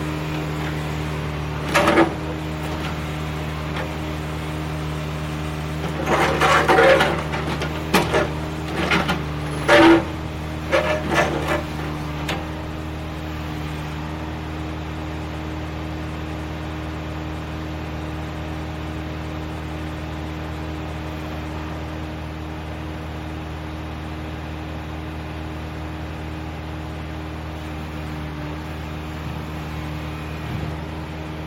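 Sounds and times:
street construction: 0.0s - 31.4s.

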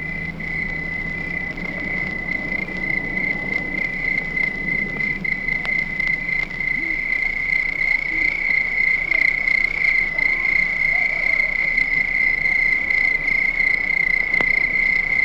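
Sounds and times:
crickets chirping at night: 0.0s - 15.2s.

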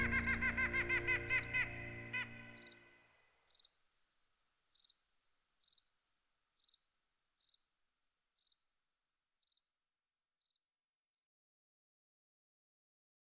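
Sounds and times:
cello: 0.0s - 2.6s.

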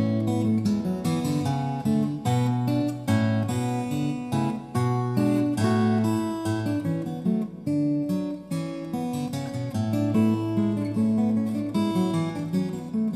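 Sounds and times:
recercar on steel string guitar: 0.0s - 13.1s.

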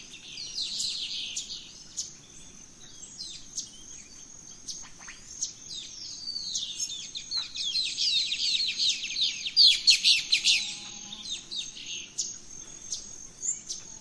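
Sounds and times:
birds in the rainforest at dawn: 0.0s - 13.9s.

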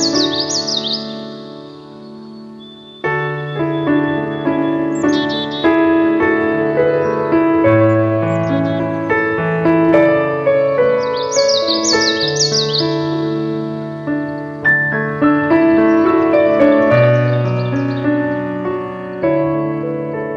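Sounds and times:
common yellowthroat: 0.0s - 20.3s.

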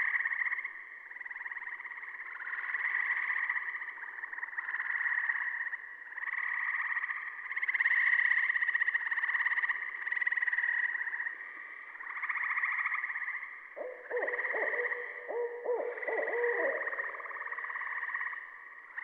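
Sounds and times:
Gray Treefrog calling: 0.0s - 19.0s
Saw-whet Owl calling: 13.8s - 17.7s.

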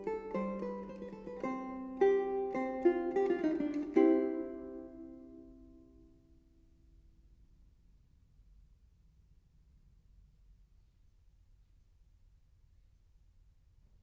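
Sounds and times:
pavane on a four-course guitar: 0.0s - 6.0s.

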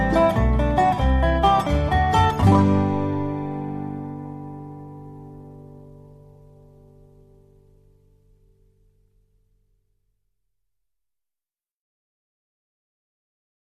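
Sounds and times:
dobro: 0.0s - 10.1s.

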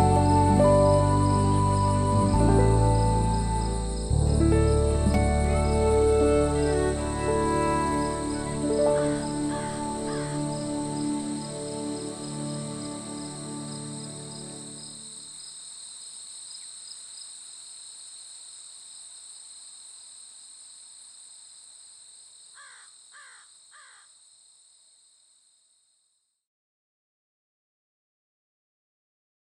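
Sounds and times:
cello: 0.0s - 14.9s.

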